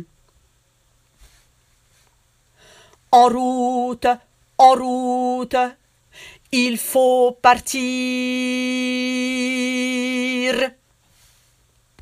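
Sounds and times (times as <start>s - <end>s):
tenor singing: 3.1s - 5.8s, 6.5s - 10.8s.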